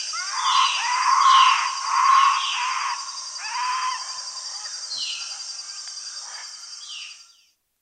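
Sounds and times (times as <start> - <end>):
white-fronted capuchin monkey in South American rainforest: 0.1 - 4.4.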